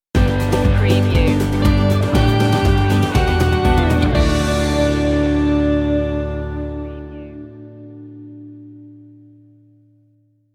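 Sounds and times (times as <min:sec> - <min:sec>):
musical stinger: 0:00.7 - 0:08.6.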